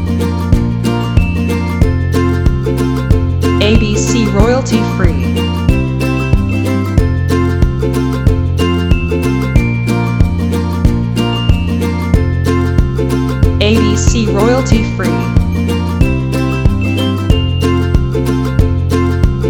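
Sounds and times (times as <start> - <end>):
happy ukulele background music: 0.0 - 19.4.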